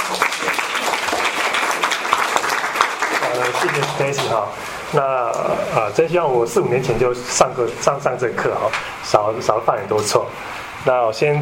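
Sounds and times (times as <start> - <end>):
audience clapping hands: 0.0 - 4.6
speech: 3.5 - 11.4.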